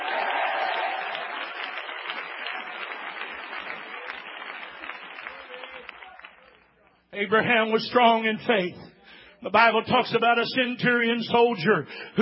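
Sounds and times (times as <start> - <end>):
audience clapping and cheering: 0.0 - 6.9
speech: 7.2 - 12.2.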